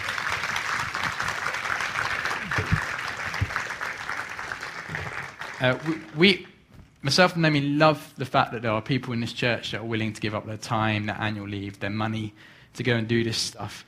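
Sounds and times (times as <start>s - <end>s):
audience applause: 0.0s - 6.2s
speech: 5.6s - 13.8s.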